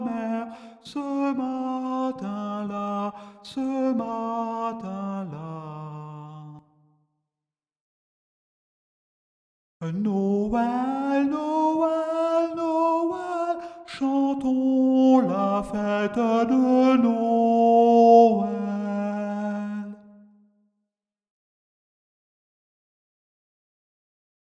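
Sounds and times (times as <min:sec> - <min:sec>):
tenor singing Christmas carol: 0:00.0 - 0:06.6, 0:09.8 - 0:20.2.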